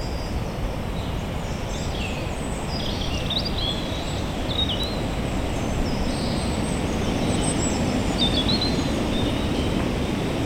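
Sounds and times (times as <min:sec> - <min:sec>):
wind rushing through Limbrick Woods: 0:00.0 - 0:10.4
birds chirping and twittering: 0:01.8 - 0:09.6.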